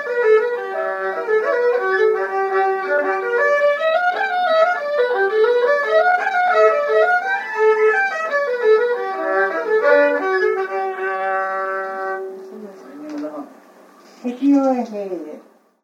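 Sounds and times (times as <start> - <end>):
jig tune: 0.0 - 12.6.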